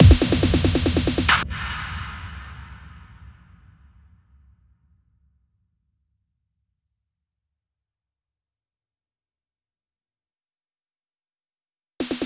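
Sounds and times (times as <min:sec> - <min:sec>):
drum fills: 0:00.0 - 0:03.4, 0:12.0 - 0:12.2.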